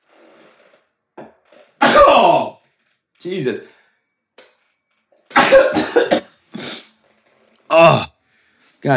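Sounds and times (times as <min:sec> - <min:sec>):
loud sneeze: 0:01.8 - 0:02.6, 0:05.3 - 0:06.9
speech: 0:03.2 - 0:03.7, 0:07.8 - 0:08.1.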